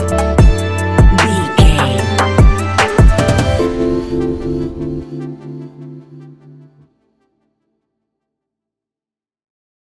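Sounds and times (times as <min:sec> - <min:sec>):
relaxed chill music: 0:00.0 - 0:06.8.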